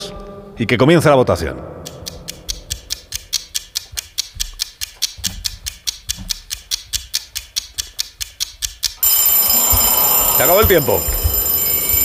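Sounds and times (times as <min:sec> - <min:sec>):
speech: 0:00.6 - 0:01.7, 0:10.4 - 0:11.2
vintage bell ringing: 0:09.0 - 0:12.0.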